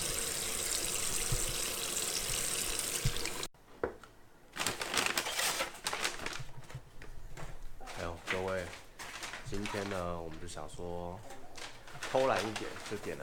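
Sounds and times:
hands washed under a running water tap: 0.0s - 3.5s
rustling: 4.5s - 13.2s
speech: 9.8s - 11.4s, 12.1s - 13.2s.

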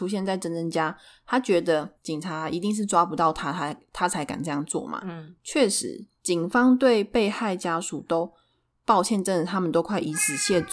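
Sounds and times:
speech: 0.0s - 10.7s
cat meowing: 10.1s - 10.7s.

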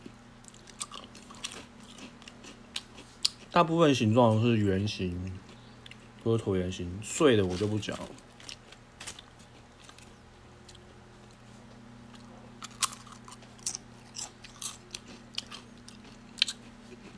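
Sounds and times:
low steady hum: 0.0s - 17.1s
biting and chewing crunchy potato chips: 0.4s - 3.6s, 7.4s - 11.4s, 12.1s - 17.1s
speech: 3.6s - 5.5s, 6.2s - 8.3s.

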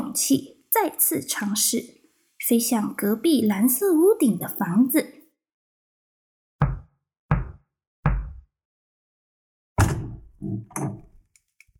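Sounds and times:
speech: 0.2s - 5.1s
firm knocking on a door: 6.6s - 8.4s, 9.8s - 11.1s
door latch: 9.8s - 11.2s.

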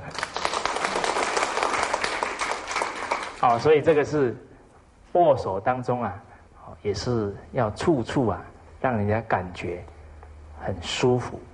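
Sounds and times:
audience applause: 0.0s - 3.7s
speech: 3.4s - 4.5s, 5.1s - 9.9s, 10.6s - 11.5s.

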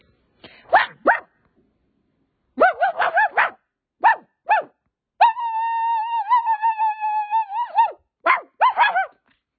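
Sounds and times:
person imitating a dog barking and howling: 0.7s - 1.2s, 2.6s - 9.2s.

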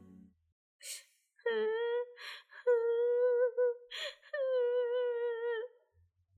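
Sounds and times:
girl crying: 1.6s - 5.7s.

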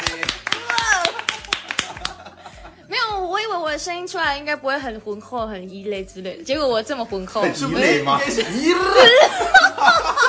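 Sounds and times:
hand clapping: 0.0s - 2.3s
laughter: 0.0s - 2.9s, 7.6s - 10.2s
voices cheering: 0.2s - 1.4s
speech: 3.5s - 10.2s.

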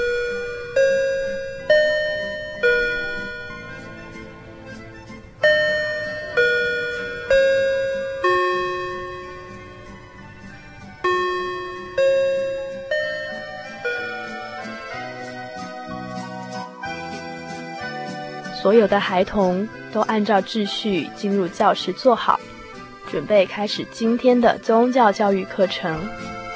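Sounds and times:
bell ringing for children's gathering: 0.0s - 4.4s, 5.4s - 16.3s
speech: 18.7s - 22.5s, 23.1s - 26.4s.

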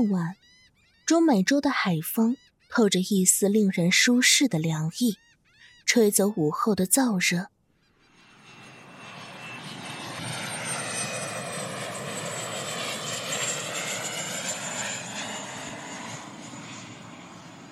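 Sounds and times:
speech: 0.0s - 0.5s, 1.1s - 5.3s, 5.9s - 7.6s
private jet coming in to land: 8.1s - 17.7s.

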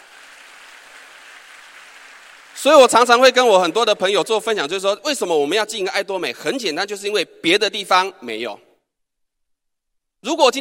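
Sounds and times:
applause: 0.0s - 3.8s
speech: 2.6s - 8.6s, 10.2s - 10.5s.

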